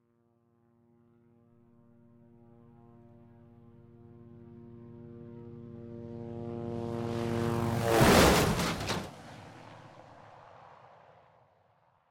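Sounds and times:
distant helicopter approaching: 1.8 - 12.0.

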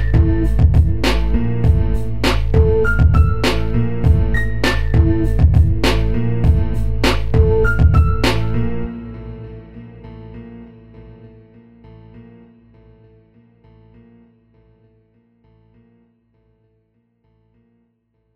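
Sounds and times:
spatial 3D bass: 0.0 - 9.9.

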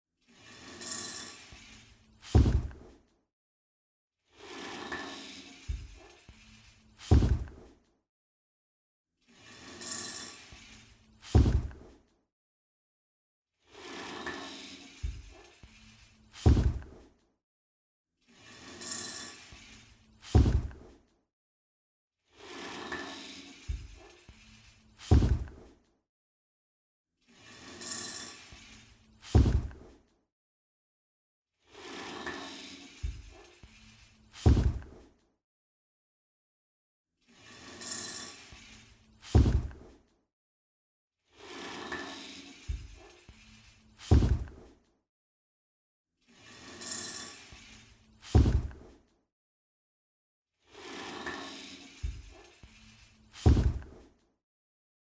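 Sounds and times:
giant monster walking slowly and heavily: 2.4 - 2.7, 7.1 - 7.5, 11.4 - 11.7, 16.5 - 16.8, 20.4 - 20.7, 25.1 - 25.5, 29.4 - 29.7, 34.5 - 34.8, 39.4 - 39.7, 44.1 - 44.5, 48.4 - 48.7, 53.5 - 53.8.

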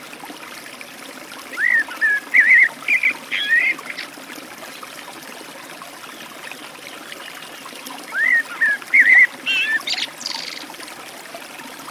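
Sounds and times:
Eurasian blackbird delivering warbled whistles beside a forest stream: 1.6 - 4.1, 8.1 - 10.7.

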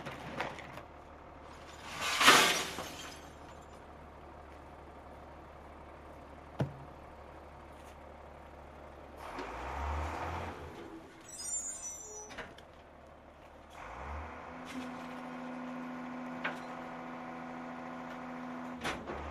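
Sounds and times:
garbage truck compacting and crushing: 0.0 - 5.0, 9.2 - 19.2.

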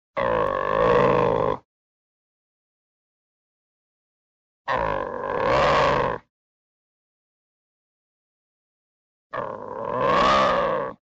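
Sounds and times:
angry growl: 0.2 - 1.6, 4.7 - 6.3, 9.4 - 11.0
low roar: 0.2 - 1.6, 4.7 - 6.2, 9.4 - 11.0.

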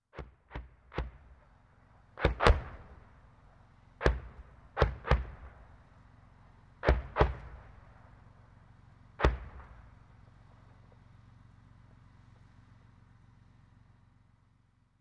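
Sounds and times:
mortar fire: 0.2 - 6.1, 6.8 - 8.4, 9.1 - 10.8.

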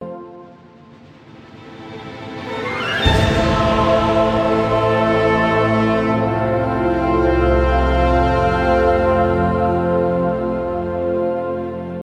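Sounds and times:
orchestra playing for a film scene: 0.4 - 12.0.

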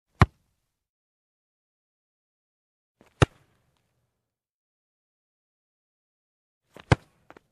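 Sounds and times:
football being kicked: 0.2 - 0.4, 6.8 - 7.2.

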